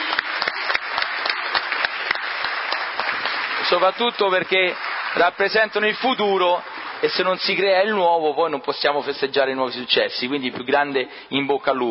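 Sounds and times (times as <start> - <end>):
crowd applause: 0.0 - 8.2
speech: 3.7 - 11.8.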